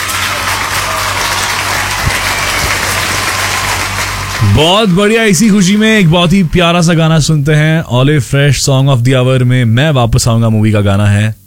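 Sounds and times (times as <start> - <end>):
audience applause: 0.0 - 7.3
speech: 4.6 - 11.4.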